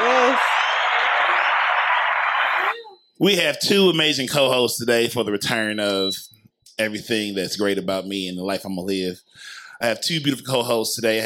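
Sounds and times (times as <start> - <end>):
applause: 0.0 - 2.8
speech: 3.2 - 11.2.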